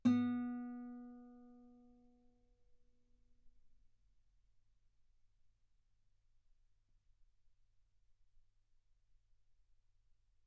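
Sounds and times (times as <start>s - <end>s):
guitar note B3: 0.0s - 1.5s.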